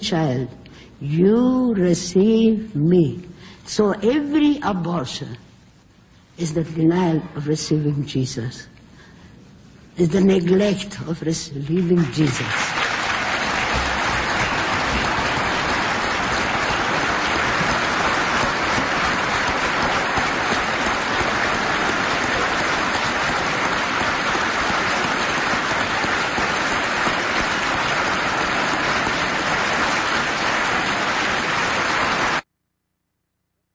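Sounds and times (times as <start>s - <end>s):
speech: 0.0s - 5.4s, 6.4s - 8.7s, 10.0s - 12.6s
audience applauding: 12.0s - 32.4s.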